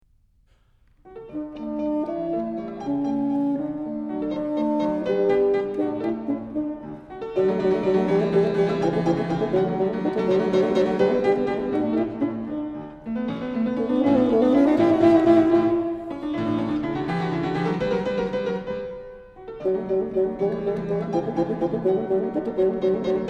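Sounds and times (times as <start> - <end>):
bassoon sonata in E flat: 1.1 - 23.2.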